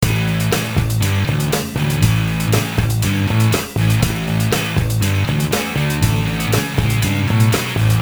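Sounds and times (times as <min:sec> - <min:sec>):
depressing rock music: 0:00.0 - 0:07.9.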